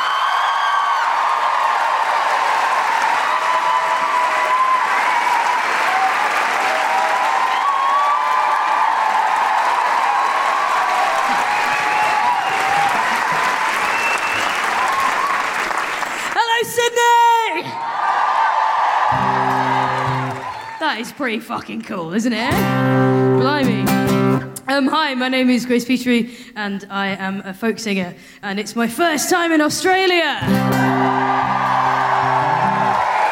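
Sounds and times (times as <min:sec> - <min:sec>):
audience cheering and whoops: 0:00.0 - 0:15.8, 0:17.5 - 0:20.8, 0:30.5 - 0:33.2
audience applause welcoming a folk singer in Sydney: 0:00.0 - 0:16.7, 0:17.7 - 0:21.2, 0:30.5 - 0:33.2
speech: 0:20.9 - 0:23.9, 0:24.8 - 0:31.4.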